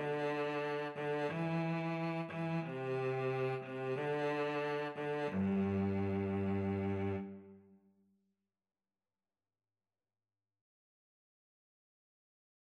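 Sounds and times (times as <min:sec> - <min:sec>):
cello duet: 0:00.0 - 0:07.7.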